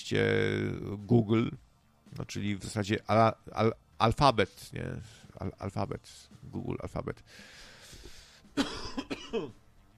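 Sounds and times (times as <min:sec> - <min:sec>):
speech: 0:00.1 - 0:07.7, 0:08.6 - 0:09.6
cough: 0:08.6 - 0:09.6.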